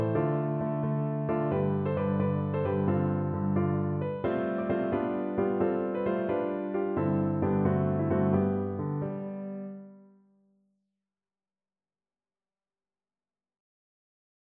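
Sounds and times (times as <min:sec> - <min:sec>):
piano playing a country dance tune: 0:00.0 - 0:10.2.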